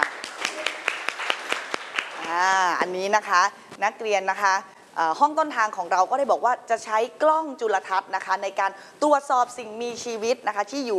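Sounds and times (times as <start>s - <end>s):
classroom group clapping in a steady rhythm: 0.0s - 2.6s
speech: 2.3s - 10.9s.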